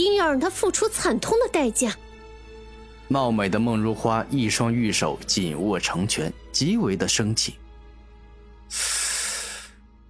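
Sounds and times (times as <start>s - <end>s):
speech: 0.0s - 2.0s, 3.1s - 7.6s, 8.7s - 9.0s
sharp forceful inhale: 8.7s - 9.8s.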